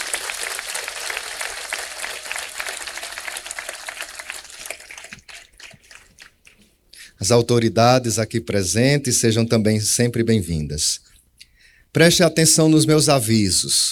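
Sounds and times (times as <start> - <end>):
applause: 0.0 - 6.5
speech: 7.2 - 11.1, 11.9 - 13.8.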